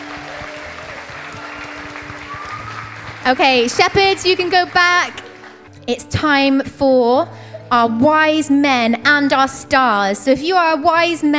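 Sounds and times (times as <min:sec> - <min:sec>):
crowd applause: 0:00.0 - 0:05.7
speech: 0:03.2 - 0:05.2, 0:05.9 - 0:11.3.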